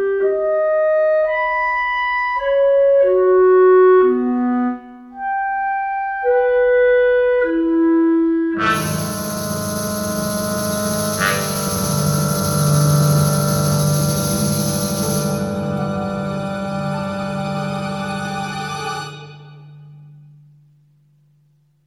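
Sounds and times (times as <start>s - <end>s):
E-flat clarinet: 0.0s - 19.6s.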